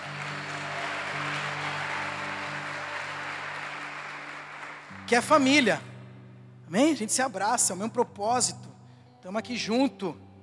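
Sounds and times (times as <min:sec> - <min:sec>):
audience applause: 0:00.0 - 0:05.1
speech: 0:05.1 - 0:05.9, 0:06.7 - 0:10.2.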